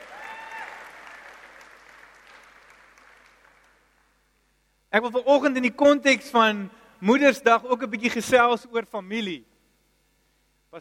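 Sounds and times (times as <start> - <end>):
audience applause: 0.0 - 4.1
speech: 4.9 - 9.5.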